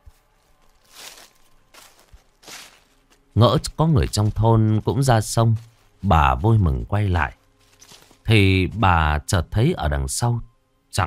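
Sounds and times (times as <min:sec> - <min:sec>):
footsteps on a muddy path: 0:00.0 - 0:08.9
speech: 0:03.4 - 0:07.4, 0:08.3 - 0:11.0.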